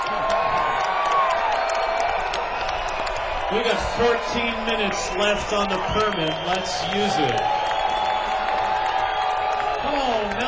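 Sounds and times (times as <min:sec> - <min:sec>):
cheers: 0:00.0 - 0:10.4
large crowd clapping and stomping: 0:00.0 - 0:10.4
speech: 0:03.5 - 0:07.6
whistle: 0:06.0 - 0:08.3.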